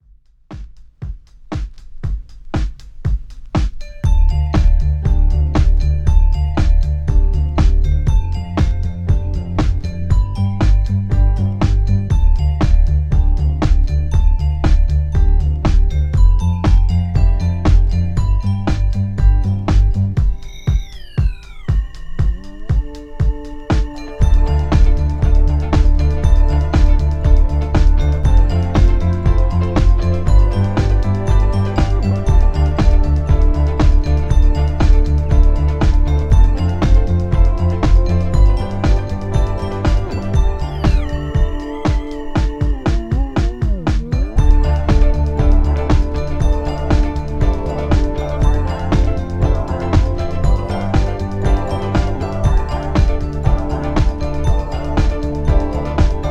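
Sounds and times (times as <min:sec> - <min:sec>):
electro disco dance music: 0:01.0 - 0:56.2.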